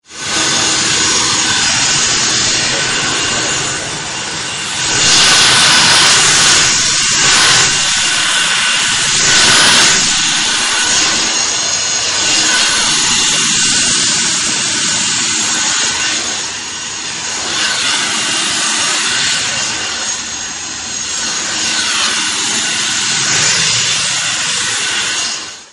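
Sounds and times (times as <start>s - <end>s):
designed spinning swoosh sound effect: 0.2s - 25.5s.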